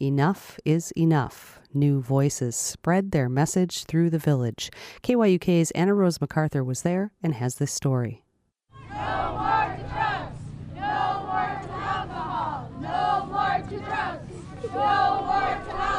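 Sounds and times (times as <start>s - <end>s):
speech: 0.0s - 8.2s
crowd gathering in front of the Queithluck post office: 8.7s - 15.9s.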